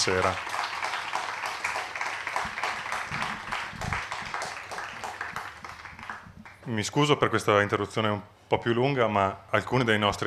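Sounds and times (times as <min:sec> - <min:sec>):
speech: 0:00.0 - 0:00.6, 0:06.7 - 0:10.2
crowd applauding: 0:00.0 - 0:06.7.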